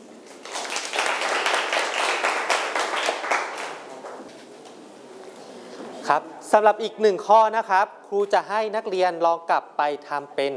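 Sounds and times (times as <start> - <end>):
classroom clapping: 0.2 - 4.2
speech: 6.1 - 10.5.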